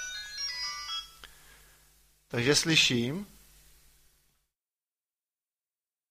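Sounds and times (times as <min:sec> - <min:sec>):
phone ringing with incoming call: 0:00.0 - 0:01.2
speech: 0:02.3 - 0:03.3.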